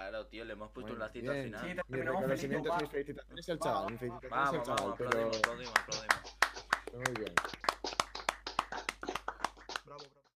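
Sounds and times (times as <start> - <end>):
speech: 0.2 - 7.7
applause: 4.6 - 10.3.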